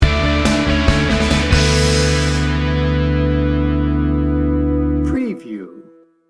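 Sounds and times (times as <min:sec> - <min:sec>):
indie rock party sting bumper: 0:00.0 - 0:04.8.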